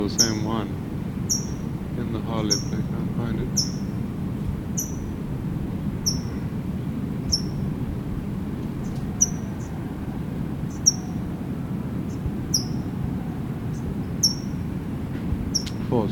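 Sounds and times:
speech: 0.0 - 0.9, 2.0 - 3.8
towhee chip calls: 0.0 - 4.0, 4.7 - 5.2, 6.0 - 6.6, 7.2 - 7.7, 8.8 - 9.8, 10.6 - 11.3, 12.0 - 13.0, 13.7 - 14.8, 15.5 - 15.9
low rumble: 0.0 - 16.1.

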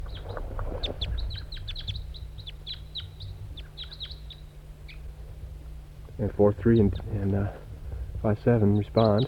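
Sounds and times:
wild bird calling, lone red male: 0.0 - 5.0, 8.6 - 9.2
constant low hum: 0.0 - 9.2
speech: 6.2 - 7.6, 8.2 - 9.2.

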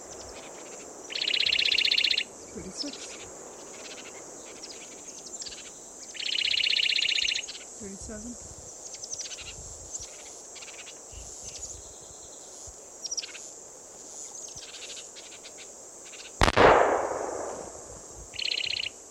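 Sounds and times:
crickets and other insects chirping: 0.0 - 19.0
speech: 7.9 - 8.6
gunshot: 16.4 - 17.9.

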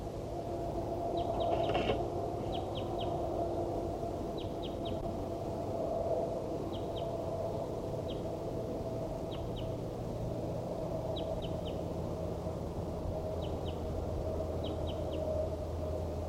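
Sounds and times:
low rumble: 0.0 - 16.2
wild bird chirping: 1.1 - 3.2, 4.3 - 5.1, 6.7 - 8.3, 9.2 - 9.8, 11.1 - 11.9, 13.2 - 13.9, 14.5 - 15.5.

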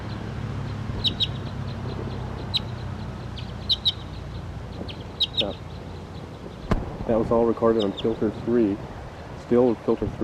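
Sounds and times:
wild bird calling: 0.0 - 6.8, 7.6 - 8.3
low rumble: 0.0 - 10.2
speech: 7.1 - 10.2.

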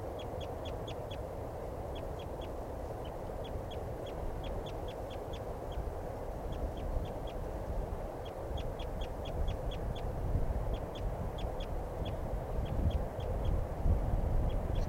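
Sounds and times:
pair of wild birds calling: 0.0 - 14.8.

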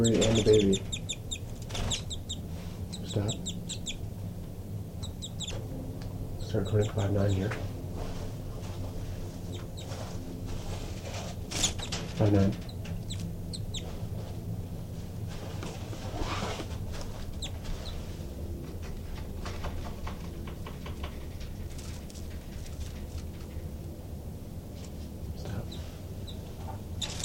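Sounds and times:
speech: 0.0 - 1.0, 3.1 - 3.5, 6.5 - 7.7, 12.2 - 12.6
thin high peeps: 0.0 - 4.0, 5.0 - 5.7, 9.5 - 10.0, 12.6 - 13.9, 27.0 - 27.2
agitated birds with chicks clucking and chirping at nest: 0.0 - 7.6, 8.7 - 14.5, 16.8 - 23.8, 25.5 - 27.2
low rumble: 0.0 - 27.2.

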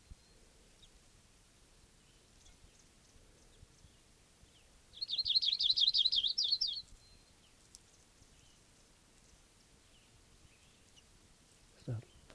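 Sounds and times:
bird calls: 2.0 - 11.1, 11.8 - 12.3.

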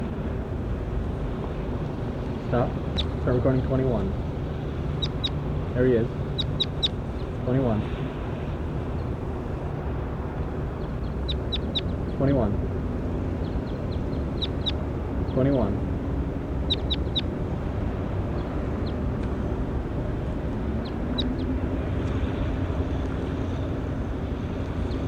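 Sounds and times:
low engine-like rumble: 0.0 - 25.0
speech: 2.5 - 4.3, 5.8 - 6.2, 7.4 - 8.0, 12.2 - 12.7, 15.4 - 15.8
bird chirping: 2.9 - 3.2, 5.0 - 5.4, 6.2 - 7.3, 10.8 - 12.2, 13.4 - 15.6, 16.6 - 17.3, 20.8 - 21.5, 24.8 - 25.0.

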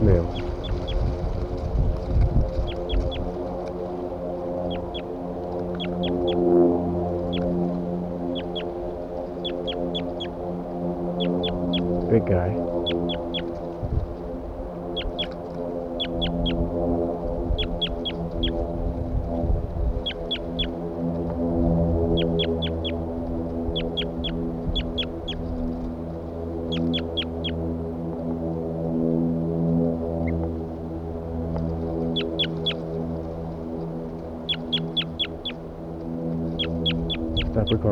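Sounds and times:
bird calling loudly: 0.0 - 1.6, 2.2 - 27.7, 31.6 - 37.9
steady low droning hum: 0.0 - 37.9
speech: 0.1 - 0.6.

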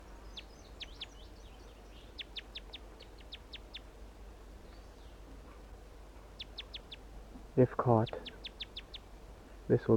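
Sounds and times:
wild male bird singing: 0.0 - 3.9, 4.6 - 5.3, 6.2 - 9.1
speech: 7.6 - 8.3, 9.7 - 9.9.

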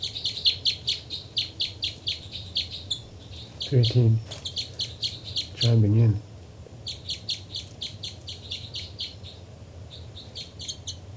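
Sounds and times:
bird chittering: 0.0 - 5.9, 6.8 - 11.1
steady low rumble: 0.0 - 11.1
speech: 3.7 - 4.4, 5.6 - 6.3.

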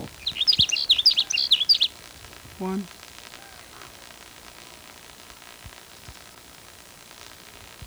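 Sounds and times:
sage sparrow singing: 0.0 - 3.9
speech: 2.6 - 3.0.

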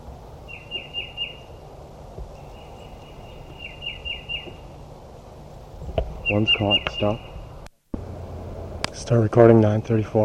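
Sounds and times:
wild bird calls: 0.4 - 1.7, 2.3 - 4.9, 6.1 - 7.7
speech: 6.3 - 7.3, 9.1 - 10.2.

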